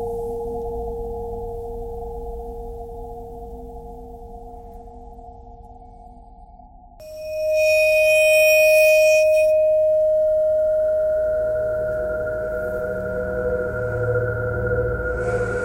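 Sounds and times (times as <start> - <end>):
bowed metal: 7.0 - 15.5.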